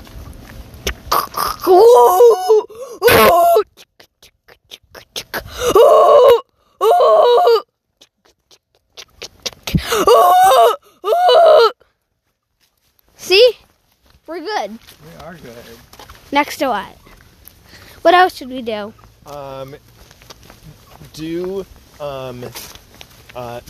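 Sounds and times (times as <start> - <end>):
person imitating a freight train: 1.0 - 11.7
speech: 1.7 - 3.6, 5.6 - 6.4, 14.6 - 17.0, 18.0 - 19.9, 21.2 - 22.7, 23.4 - 23.6.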